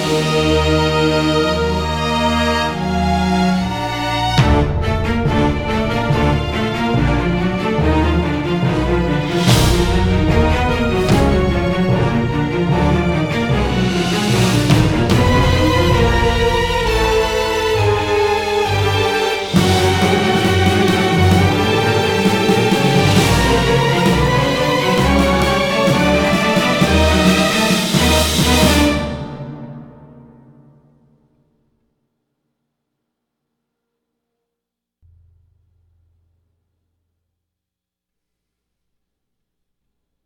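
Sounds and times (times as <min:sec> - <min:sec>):
outro music: 0:00.1 - 0:30.6.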